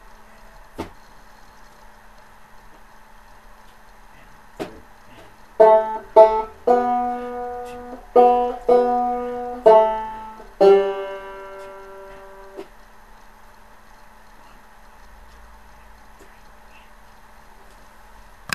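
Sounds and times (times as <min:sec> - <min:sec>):
banjo playing blues: 0:05.6 - 0:12.6.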